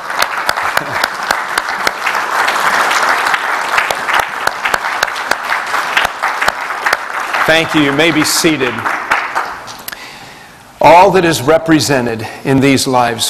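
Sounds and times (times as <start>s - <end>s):
audience applause: 0.0s - 9.8s
speech: 7.5s - 9.0s, 10.8s - 13.2s.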